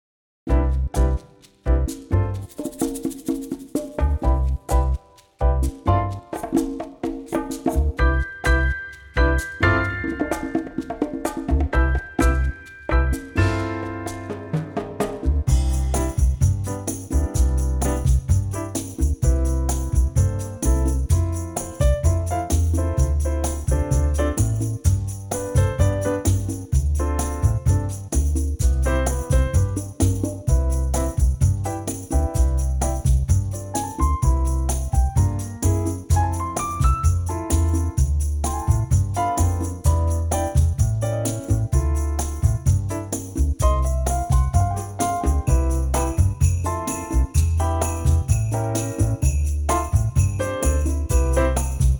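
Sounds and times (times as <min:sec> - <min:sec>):
bossa nova music in C: 0:00.5 - 0:51.9.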